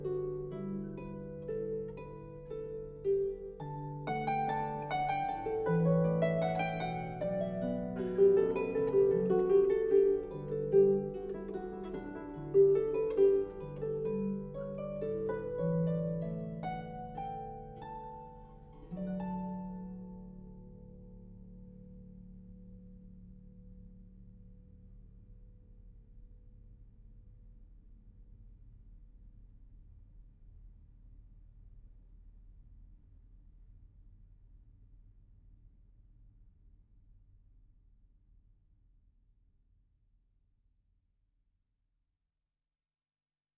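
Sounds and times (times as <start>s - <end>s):
harpist playing classical canon: 0.0s - 20.9s.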